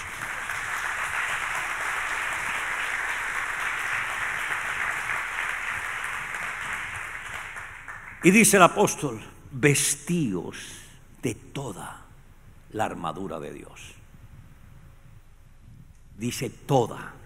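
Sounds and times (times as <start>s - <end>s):
audience applause: 0.0s - 8.5s
speech: 8.2s - 12.0s, 12.7s - 14.0s, 16.2s - 17.2s.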